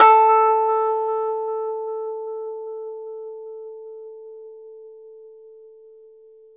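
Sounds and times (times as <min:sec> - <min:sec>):
Rhodes 73 electric piano playing slowly: 0:00.0 - 0:04.2.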